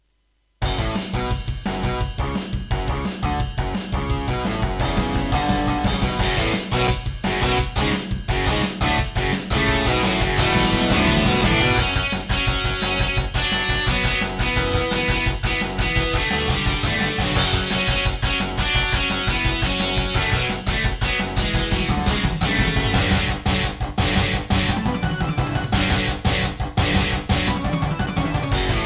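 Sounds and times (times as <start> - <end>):
MIDI game intro music on Serdaco MP32L with GeneralUser GS bank: 0.6 - 28.8.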